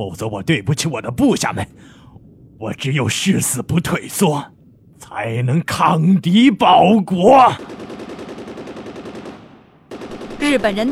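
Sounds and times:
speech: 0.0 - 2.0, 2.6 - 7.8, 10.4 - 10.9
machine gun strafing fire: 7.6 - 10.9.

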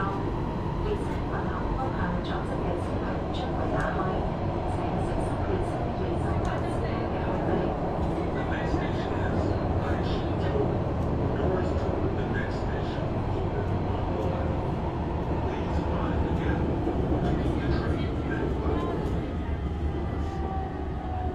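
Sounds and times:
Shenzhen metro car rumble and roar: 0.0 - 21.3.

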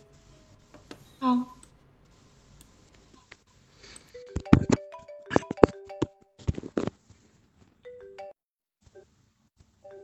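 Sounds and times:
speech: 1.2 - 1.6
phone ringtone: 4.1 - 6.7, 7.9 - 8.4.

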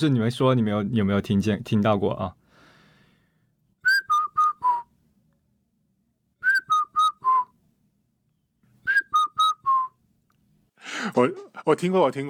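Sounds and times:
speech: 0.0 - 2.4, 11.0 - 12.2
person whistling an imitation of an Indian cuckoo call: 3.8 - 4.9, 6.4 - 7.5, 8.8 - 10.0.

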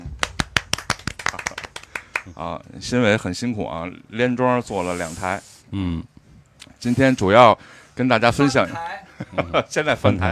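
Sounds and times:
hand claps: 0.0 - 2.3
speech: 2.3 - 6.1, 6.7 - 10.3.

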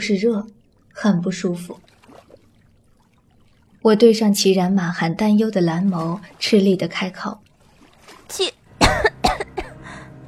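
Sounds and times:
speech: 0.0 - 1.9, 3.8 - 7.4, 8.3 - 9.1
person coughing violently after choking on water: 8.8 - 9.8.

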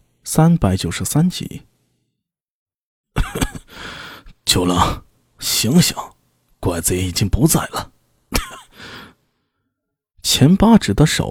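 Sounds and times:
speech: 0.2 - 1.7, 4.5 - 7.9, 10.2 - 11.2
man coughing: 3.2 - 3.8, 8.3 - 8.9.

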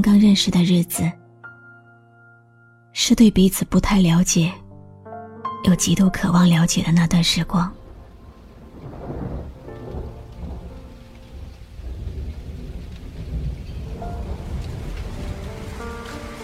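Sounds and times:
speech: 0.0 - 1.2, 3.0 - 4.6, 5.6 - 7.8
rain: 6.2 - 16.4.

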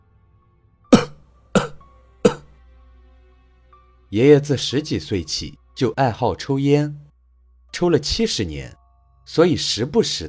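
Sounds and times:
elderly man coughing: 1.0 - 2.5
speech: 4.1 - 7.0, 7.8 - 10.2.

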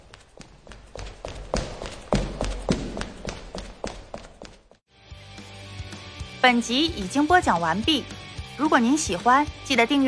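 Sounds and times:
footsteps approaching from a distance: 0.0 - 4.9
speech: 6.4 - 10.0.

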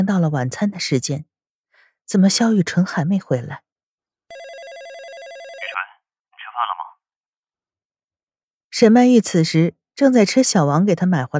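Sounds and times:
speech: 0.0 - 1.3, 2.0 - 3.6, 8.8 - 11.3
telephone ringing with a warbling electronic tone: 4.3 - 5.8.

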